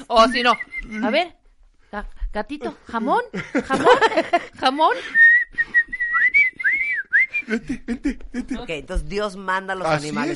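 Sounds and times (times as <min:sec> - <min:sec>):
speech: 0:00.1 - 0:05.2, 0:07.5 - 0:10.3
whistle blowing: 0:00.2 - 0:01.0, 0:05.1 - 0:07.4
laughter: 0:03.3 - 0:05.0, 0:07.3 - 0:08.7.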